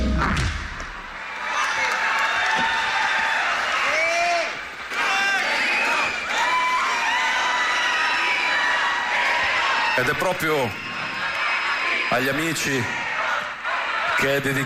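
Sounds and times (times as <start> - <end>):
audience applause: 0.7 - 14.6
speech: 10.0 - 10.9, 12.1 - 13.0, 14.2 - 14.6.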